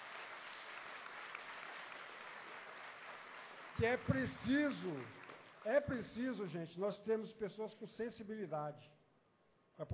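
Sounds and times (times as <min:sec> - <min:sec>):
audience applause: 0:00.0 - 0:05.9
speech: 0:03.8 - 0:09.0, 0:09.8 - 0:09.9.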